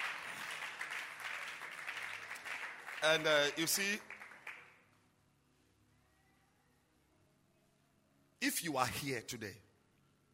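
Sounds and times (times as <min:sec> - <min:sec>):
audience clapping hands: 0:00.0 - 0:04.9
speech: 0:03.0 - 0:04.1, 0:08.4 - 0:09.7.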